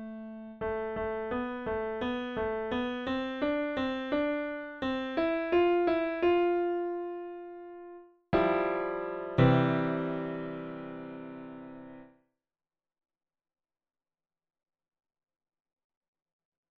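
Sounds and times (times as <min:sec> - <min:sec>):
piano: 0:00.0 - 0:12.2.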